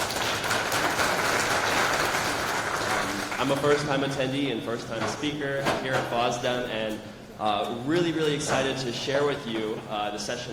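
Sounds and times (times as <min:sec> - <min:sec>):
crowd applauding: 0:00.0 - 0:03.6
speech: 0:03.4 - 0:10.5.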